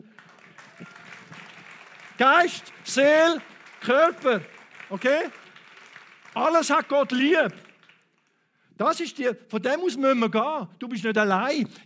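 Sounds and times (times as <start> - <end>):
audience applause: 0.0 - 8.2
speech: 2.2 - 5.4, 6.4 - 7.6, 8.8 - 11.8.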